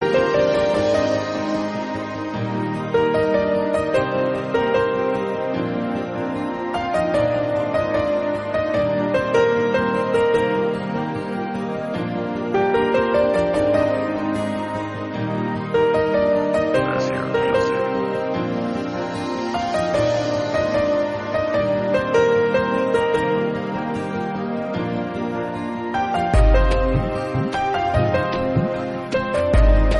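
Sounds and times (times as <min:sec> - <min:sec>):
instrumental music: 0:00.0 - 0:29.9.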